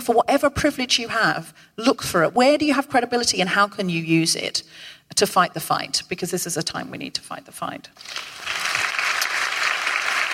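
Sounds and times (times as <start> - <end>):
speech: 0.0 - 8.7
audience applause: 8.1 - 10.3.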